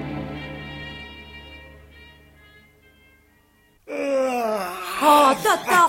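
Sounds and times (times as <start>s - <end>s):
person yawning: 3.9s - 5.8s.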